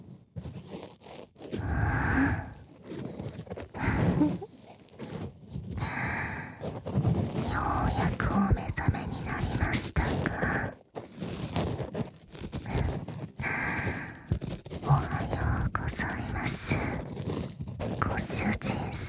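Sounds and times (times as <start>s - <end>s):
ear cleaning ASMR: 1.5s - 2.6s, 3.7s - 5.0s, 5.7s - 6.8s, 7.5s - 18.9s.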